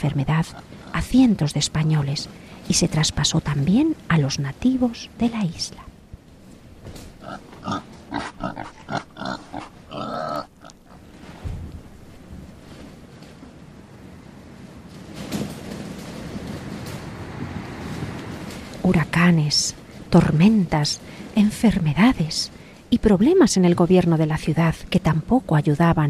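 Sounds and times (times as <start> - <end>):
speech: 0.0 - 5.9, 19.2 - 26.0
pigs oinking: 7.2 - 11.0.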